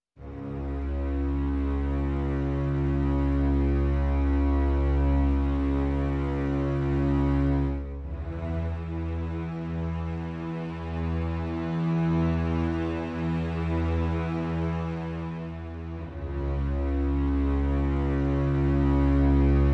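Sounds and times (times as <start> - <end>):
low strings: 0.2 - 19.7.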